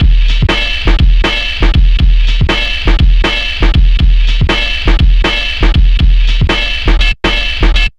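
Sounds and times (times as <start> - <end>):
drum: 0.0 - 7.9.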